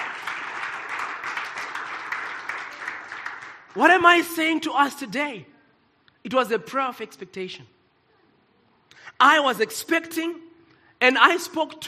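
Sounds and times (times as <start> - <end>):
audience clapping hands: 0.0 - 4.1
speech: 3.8 - 5.5, 6.2 - 7.8, 9.1 - 11.8.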